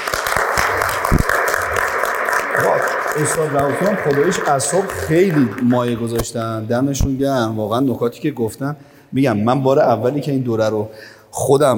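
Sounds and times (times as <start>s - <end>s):
audience applause: 0.0s - 6.6s
speech: 3.2s - 11.7s.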